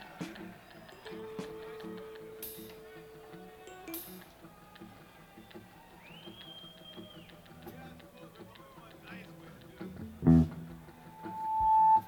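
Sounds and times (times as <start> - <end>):
instrument tuning: 0.2 - 4.6, 10.0 - 12.0.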